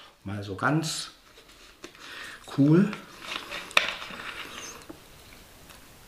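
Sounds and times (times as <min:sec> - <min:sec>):
speech: 0:00.2 - 0:01.2, 0:02.5 - 0:03.1
person drinking a sip of water: 0:01.8 - 0:05.5.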